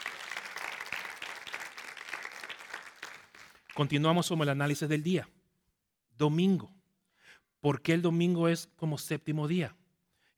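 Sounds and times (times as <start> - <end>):
audience applause: 0.0 - 4.0
speech: 3.8 - 5.4, 6.2 - 6.8, 7.6 - 9.8.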